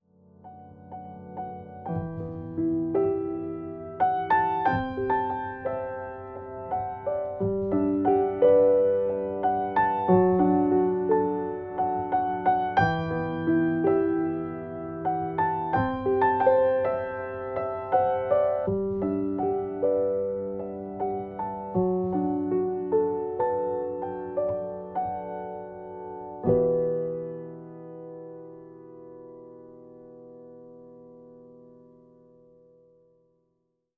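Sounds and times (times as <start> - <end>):
grand piano: 0.0 - 33.9.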